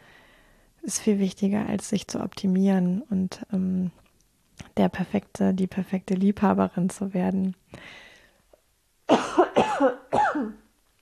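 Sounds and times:
speech: 0.9s - 4.0s, 4.8s - 8.1s, 9.1s - 10.6s
harsh coughs caused by a pollen allergy: 9.1s - 10.6s.

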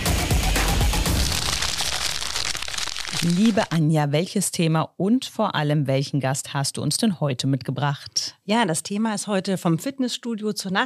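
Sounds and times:
snack bag rustling and crinkling: 1.1s - 3.8s
speech: 3.2s - 10.8s.

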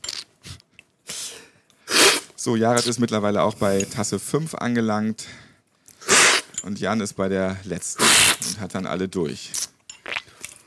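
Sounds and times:
people sniffing during coffee tasting: 1.1s - 2.3s, 6.0s - 6.6s
speech: 2.4s - 5.5s, 6.6s - 9.7s.

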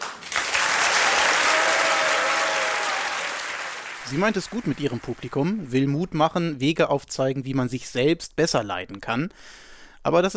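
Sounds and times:
audience applause: 0.0s - 5.6s
speech: 4.1s - 10.3s.

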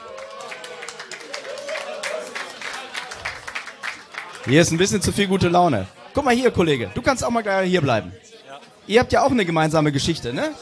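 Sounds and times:
audience applause: 0.0s - 5.0s
voices in crowd: 0.0s - 10.6s
speech: 4.4s - 8.2s, 8.9s - 10.6s.

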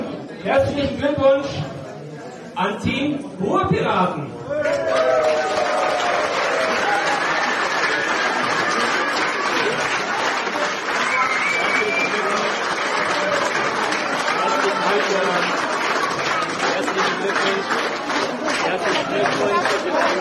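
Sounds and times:
speech: 0.2s - 1.7s, 2.6s - 6.3s
audience applause: 4.5s - 20.1s.

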